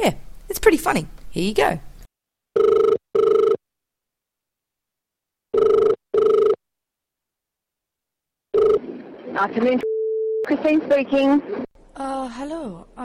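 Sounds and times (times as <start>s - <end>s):
speech: 0.0s - 1.9s, 9.4s - 9.9s, 10.5s - 11.6s, 12.3s - 13.0s
telephone ringing: 2.6s - 3.6s, 5.5s - 6.6s, 8.5s - 8.9s.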